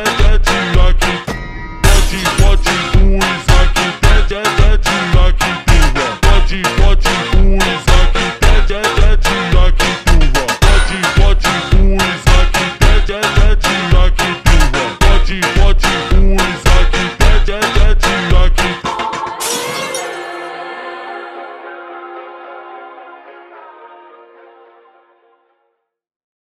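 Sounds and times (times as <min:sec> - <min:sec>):
slowed Christmas kids funk music: 0:00.0 - 0:19.4.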